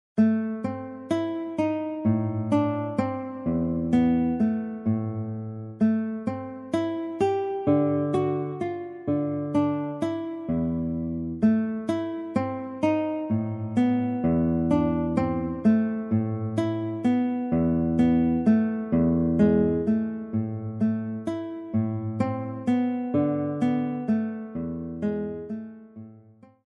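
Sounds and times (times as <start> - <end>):
small guitar: 0.2 - 26.6.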